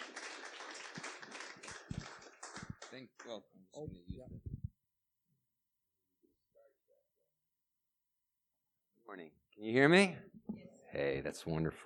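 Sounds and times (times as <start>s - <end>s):
audience clapping in welcome: 0.0s - 3.4s
speech: 3.0s - 4.6s, 9.1s - 11.8s.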